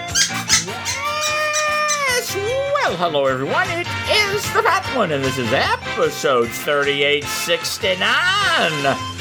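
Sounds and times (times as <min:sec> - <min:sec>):
chirping noise: 0:00.2 - 0:02.6
speech: 0:02.9 - 0:09.1.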